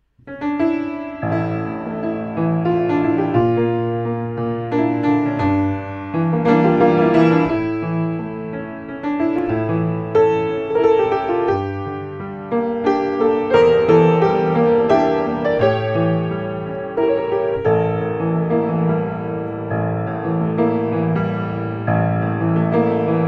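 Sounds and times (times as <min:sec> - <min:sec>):
piano: 0:00.0 - 0:23.2.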